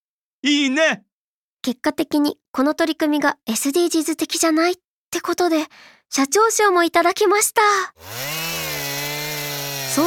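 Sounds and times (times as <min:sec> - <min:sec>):
speech: 0:00.4 - 0:08.4
chainsaw running: 0:07.9 - 0:10.0.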